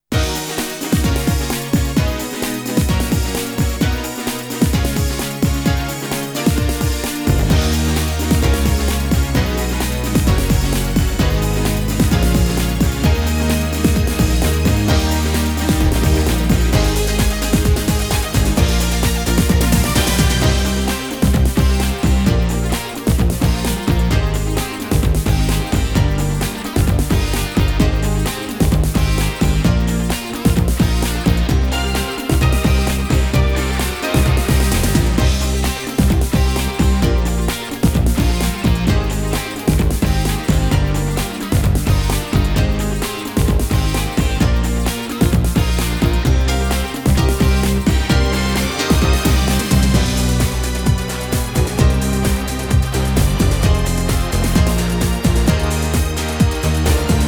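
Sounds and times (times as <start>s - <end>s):
karaoke singing: 0.1s - 57.2s.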